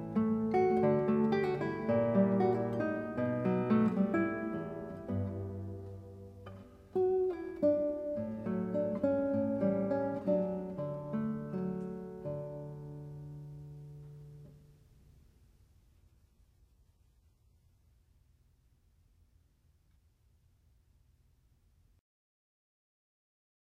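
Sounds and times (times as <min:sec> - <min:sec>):
guitar: 0:00.0 - 0:15.6.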